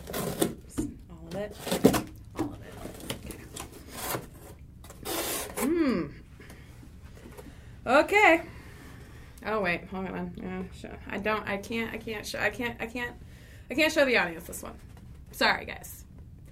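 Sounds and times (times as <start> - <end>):
speech: 1.4 - 1.9, 7.9 - 8.5, 9.5 - 16.0
adhesive tape being pulled off: 4.9 - 5.7
person exclaiming: 5.6 - 6.2.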